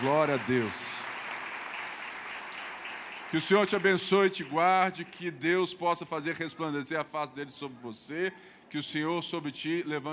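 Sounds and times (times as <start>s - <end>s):
speech: 0.0s - 0.9s, 3.3s - 10.1s
audience applause: 0.0s - 4.7s.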